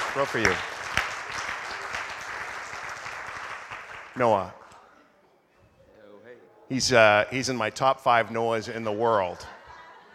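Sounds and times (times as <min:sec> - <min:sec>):
audience applauding and cheering: 0:00.0 - 0:04.5
speech: 0:00.2 - 0:00.8, 0:04.2 - 0:04.6, 0:06.7 - 0:09.6
laughter: 0:08.2 - 0:10.1.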